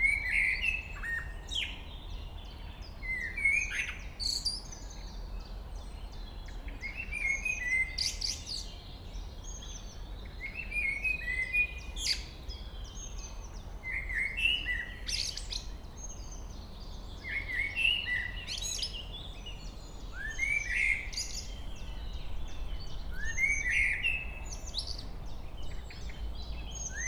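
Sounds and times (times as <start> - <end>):
common blackbird singing: 0.0 - 27.0.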